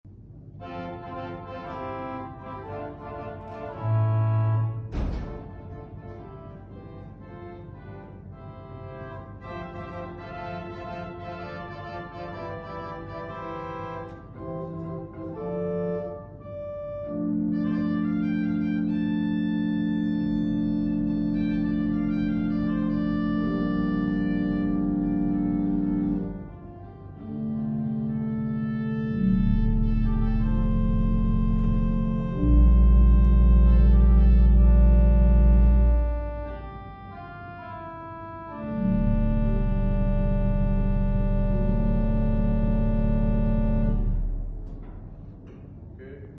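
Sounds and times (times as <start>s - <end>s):
pipe organ: 0.5s - 45.4s.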